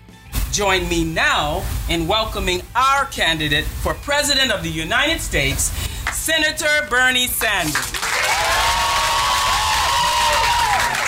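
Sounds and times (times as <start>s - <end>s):
speech: 0.6s - 8.1s
enthusiastic crowd cheering and applauding at a political rally: 7.7s - 11.0s
high whoops: 8.1s - 11.0s.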